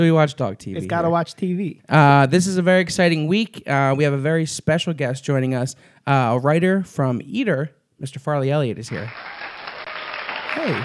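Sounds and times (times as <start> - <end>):
speech: 0.0 - 9.4, 10.6 - 10.8
person calling out: 0.8 - 1.2
studio audience applause: 8.9 - 10.8.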